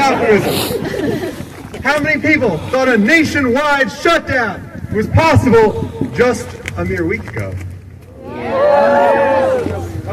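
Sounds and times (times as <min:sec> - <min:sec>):
laughter: 0:00.0 - 0:01.6
speech: 0:00.1 - 0:07.7, 0:08.5 - 0:10.1
rally crowd cheering and shouting: 0:08.2 - 0:10.1.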